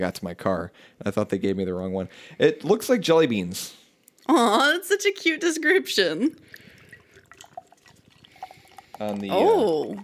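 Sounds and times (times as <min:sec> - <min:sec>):
speech: 0:00.0 - 0:06.6, 0:09.0 - 0:10.0
beer being poured, foaming: 0:06.4 - 0:10.0.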